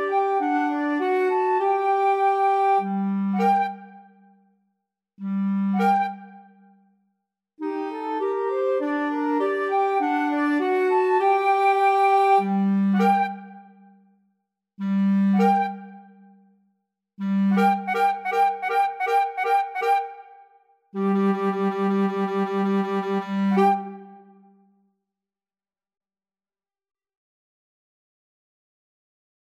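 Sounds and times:
clarinet playing: 0.0s - 3.8s, 7.6s - 13.5s, 17.2s - 20.3s, 21.0s - 24.3s
two flutes playing: 0.0s - 4.0s, 5.6s - 6.5s, 7.6s - 13.7s, 14.8s - 16.1s, 17.2s - 24.5s.

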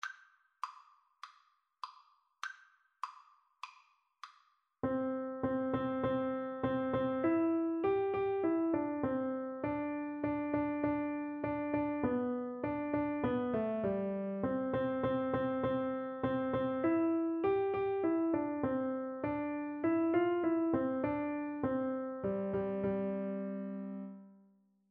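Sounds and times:
piano duet: 4.8s - 24.4s.

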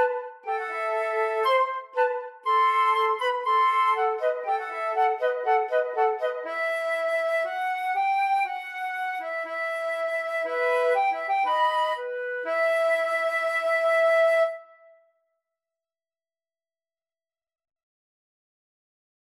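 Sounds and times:
flute duet: 0.0s - 15.0s.

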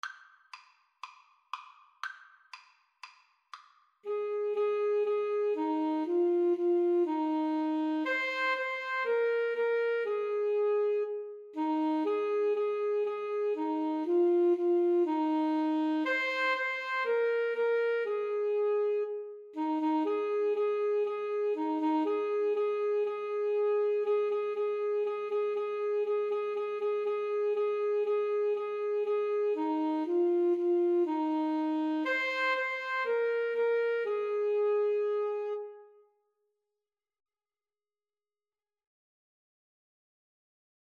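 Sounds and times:
saxophone melody in A: 4.0s - 36.0s.

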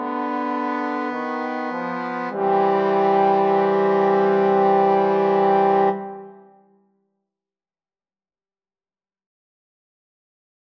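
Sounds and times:
trombone trio playing an aequale: 0.0s - 6.4s.

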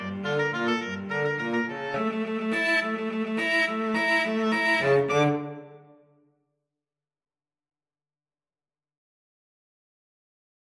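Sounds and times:
cello: 0.0s - 6.0s
oboe: 0.0s - 6.0s.

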